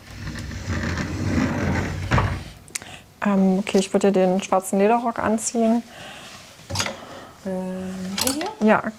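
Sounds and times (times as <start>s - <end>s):
sliding door of a white half-height wardrobe rolling open: 0.0s - 2.6s
speech: 3.2s - 6.8s, 7.4s - 8.9s.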